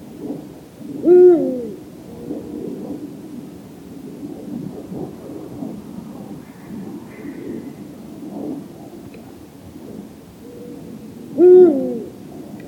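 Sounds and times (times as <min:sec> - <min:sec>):
Eurasian eagle-owl Bubo bubo hooting: 0:00.3 - 0:03.1, 0:06.3 - 0:09.5, 0:10.4 - 0:12.6.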